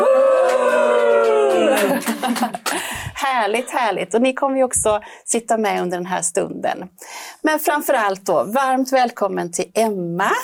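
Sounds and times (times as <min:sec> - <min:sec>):
studio audience cheering: 0:00.0 - 0:02.3
scattered claps: 0:00.4 - 0:03.0
laughter: 0:00.9 - 0:04.0
speech: 0:02.2 - 0:02.6, 0:03.2 - 0:10.4.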